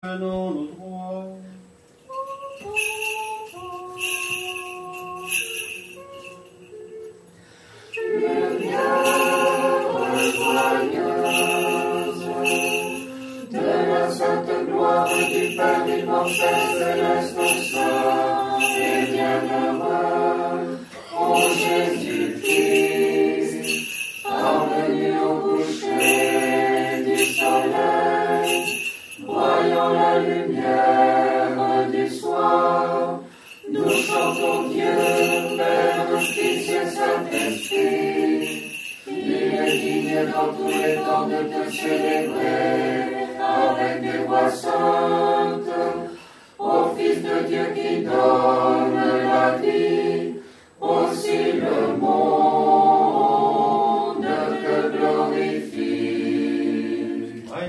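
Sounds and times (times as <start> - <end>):
Orthodox vigil hymn singing: 2.1 - 7.1, 7.9 - 57.6.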